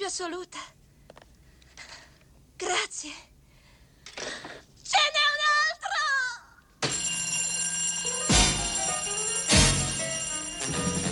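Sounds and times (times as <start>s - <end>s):
speech: 0.1s - 0.8s, 2.6s - 3.3s, 4.2s - 5.6s
old bell telephone ringing with an incoming call: 6.8s - 11.0s.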